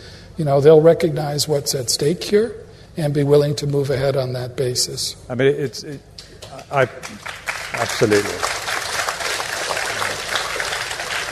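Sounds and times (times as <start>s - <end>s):
speech: 0.4s - 8.6s
audience applause: 7.0s - 11.3s.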